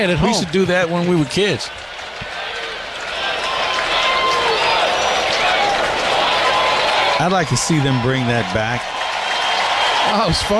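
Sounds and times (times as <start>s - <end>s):
speech: 0.0s - 1.9s, 7.2s - 9.0s, 10.0s - 10.5s
baseball stadium crowd cheering: 0.0s - 10.5s.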